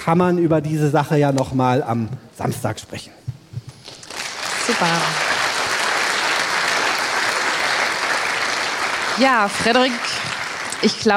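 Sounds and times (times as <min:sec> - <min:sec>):
speech: 0:00.0 - 0:03.2, 0:04.7 - 0:05.3, 0:09.2 - 0:11.1
audience applause after a talk: 0:03.9 - 0:11.1.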